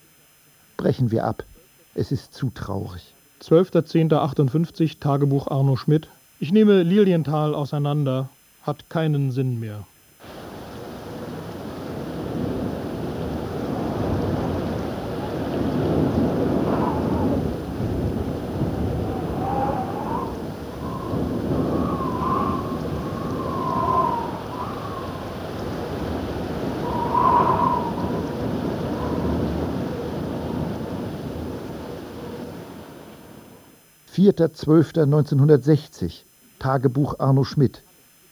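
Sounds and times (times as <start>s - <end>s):
speech: 0.8s - 10.3s, 34.2s - 37.9s
heavy rain: 10.2s - 33.7s
thunder: 10.3s - 32.8s.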